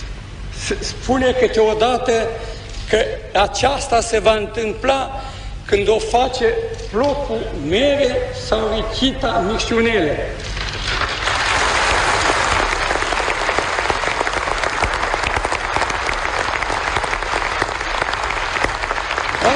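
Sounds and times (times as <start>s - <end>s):
speech: 0.7s - 10.5s
audience applause: 10.9s - 19.5s.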